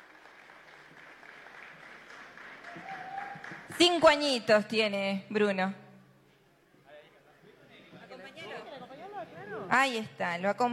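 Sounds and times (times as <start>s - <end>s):
audience applause: 0.0s - 3.7s
speech: 3.7s - 5.8s, 9.8s - 10.7s.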